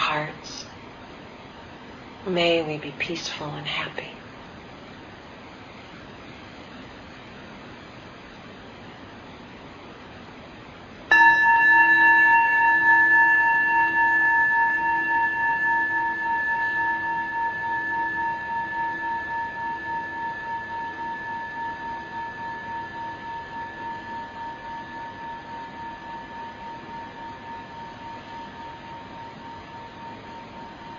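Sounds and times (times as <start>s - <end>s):
speech: 2.2s - 4.2s
struck meditation bell ringing: 11.1s - 30.9s.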